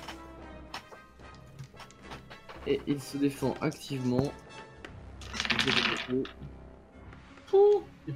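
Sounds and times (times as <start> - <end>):
speech: 2.6 - 4.4, 5.6 - 6.6, 7.5 - 8.1
dice rolled for a defense roll rattling across a hard surface: 5.2 - 6.5.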